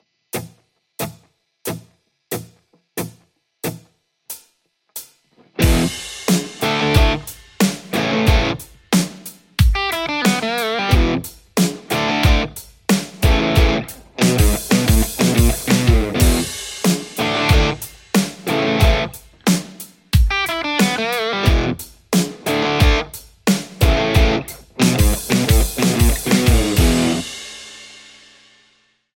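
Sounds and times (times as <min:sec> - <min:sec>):
Les Paul electric guitar: 0:05.4 - 0:08.8, 0:09.7 - 0:19.6, 0:20.2 - 0:23.2, 0:23.8 - 0:27.4.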